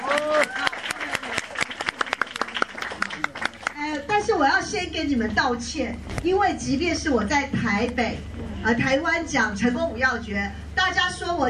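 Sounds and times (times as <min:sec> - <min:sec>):
audience applause: 0:00.0 - 0:04.0
speech: 0:04.4 - 0:11.4.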